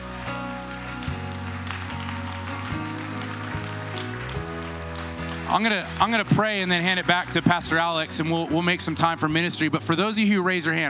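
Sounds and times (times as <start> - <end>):
audience applause: 0.0 - 8.7
sustained low keyboard chords: 0.0 - 10.8
speech: 5.5 - 10.8.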